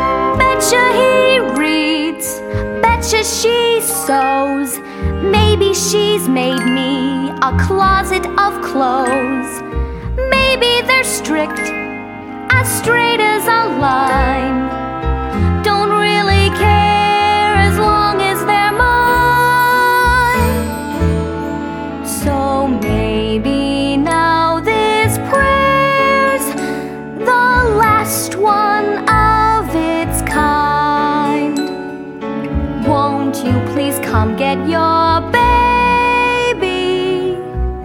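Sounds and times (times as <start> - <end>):
vocals: 0.2 - 37.8.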